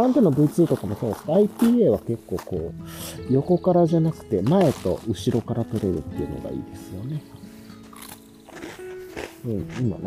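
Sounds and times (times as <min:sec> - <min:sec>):
speech: 0:00.1 - 0:07.4, 0:09.4 - 0:10.0
person chewing a cookie: 0:07.8 - 0:09.6.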